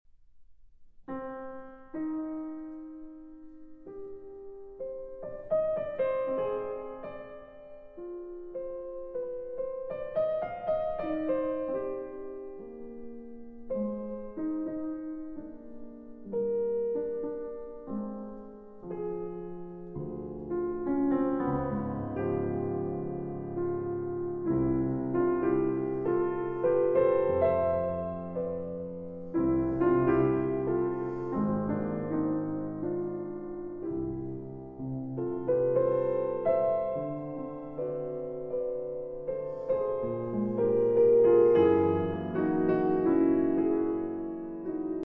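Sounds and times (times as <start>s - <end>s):
solo piano serenade: 0.8s - 45.0s.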